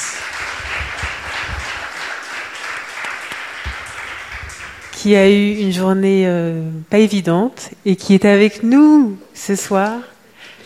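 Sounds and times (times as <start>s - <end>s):
audience applause: 0.0s - 5.1s
speech: 5.0s - 10.1s.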